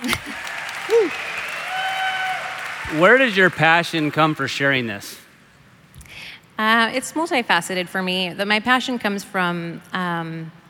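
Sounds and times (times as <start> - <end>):
audience clapping: 0.0 - 4.9
vocal whoop: 0.8 - 2.5
speech: 2.9 - 5.2, 6.6 - 10.6.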